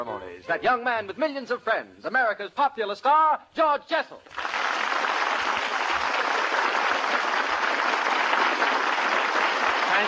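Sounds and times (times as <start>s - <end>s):
speech: 0.0s - 4.5s
audience applause: 4.3s - 10.0s.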